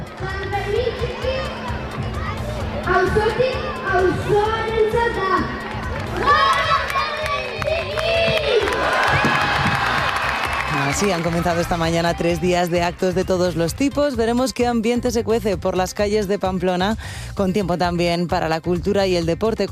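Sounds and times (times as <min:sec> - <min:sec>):
children shouting and calling in Pamplona old town during San Fermín Chiquito: 0:00.0 - 0:10.9
festival crowd chatter in Pamplona old town: 0:00.0 - 0:13.8
speech: 0:11.0 - 0:19.7.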